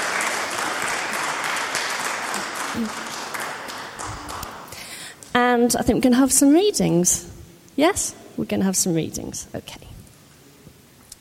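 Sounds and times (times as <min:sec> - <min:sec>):
audience applause: 0:00.0 - 0:04.7
speech: 0:02.8 - 0:03.1, 0:05.4 - 0:09.9.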